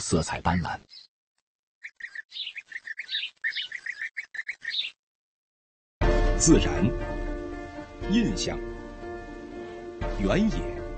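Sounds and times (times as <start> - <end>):
speech: 0.0 - 1.1, 6.4 - 7.2, 8.0 - 8.8, 10.1 - 10.8
nestlings of colourful, elegant birds calling: 1.8 - 5.0.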